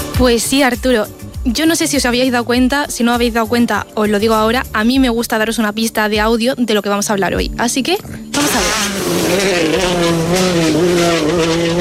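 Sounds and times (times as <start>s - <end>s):
speech: 0.2s - 11.7s
rally car engine: 8.1s - 11.7s.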